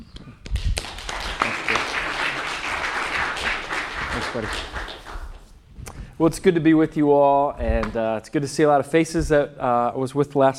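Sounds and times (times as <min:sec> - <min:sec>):
church congregation applauding to welcome a guest speaker: 0:00.5 - 0:05.5
speech: 0:04.3 - 0:04.8, 0:06.2 - 0:10.5.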